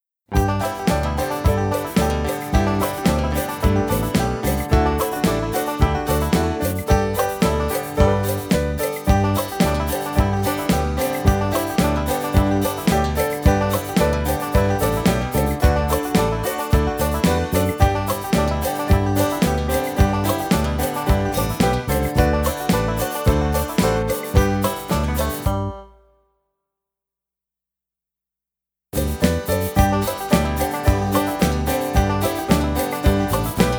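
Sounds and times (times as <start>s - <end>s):
instrumental music: 0.3s - 26.2s, 29.0s - 33.7s.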